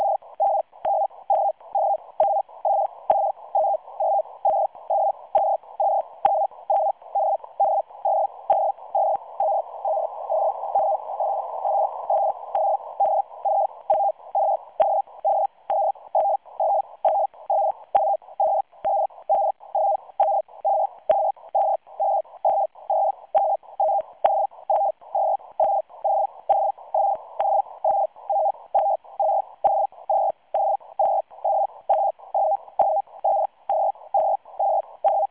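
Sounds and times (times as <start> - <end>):
SITOR-A radioteletype signal at 100 baud with 170 Hz shift: 0.0 - 35.3.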